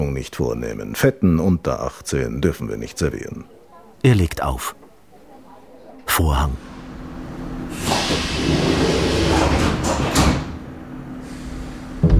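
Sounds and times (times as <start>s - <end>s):
speech: 0.0s - 4.8s, 6.2s - 6.7s
moving subway train heard from inside: 6.6s - 12.0s.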